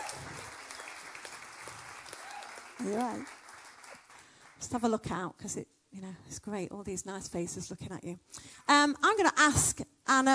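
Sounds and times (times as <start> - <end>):
faint audience round of applause for a woman being welcomed up: 0.0 - 4.8
speech: 2.8 - 3.4, 4.6 - 10.3.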